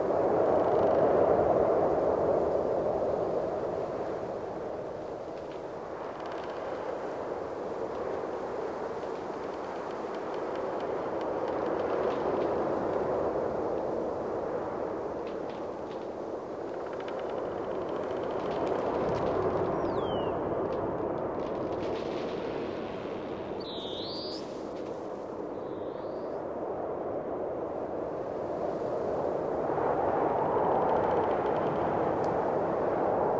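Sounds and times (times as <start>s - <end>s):
snowy exterior ambience: 0.0s - 33.3s.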